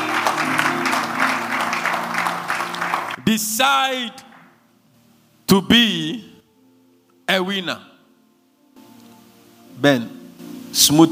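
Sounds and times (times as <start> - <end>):
audience clapping: 0.0 - 3.5, 4.1 - 4.6
speech: 3.3 - 4.3, 5.5 - 6.3, 7.3 - 7.9, 9.8 - 11.0.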